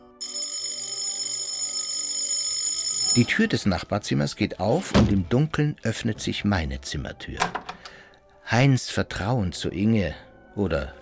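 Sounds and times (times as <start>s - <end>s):
electric doorbell ringing: 0.2s - 3.4s
speech: 3.1s - 7.6s, 8.5s - 11.0s.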